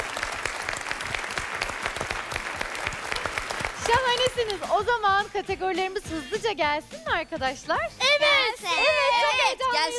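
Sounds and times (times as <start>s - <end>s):
audience applause: 0.0s - 4.6s
speech: 3.9s - 9.9s.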